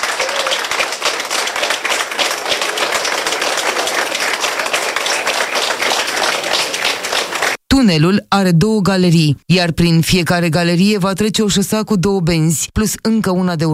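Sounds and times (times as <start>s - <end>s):
workers applauding underground in a tunnel: 0.0s - 7.6s
speech: 7.8s - 13.7s.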